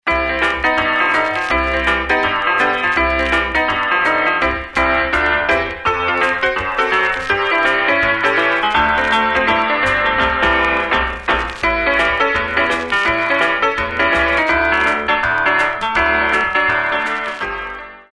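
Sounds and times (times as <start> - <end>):
ragtime music: 0.0 - 18.1.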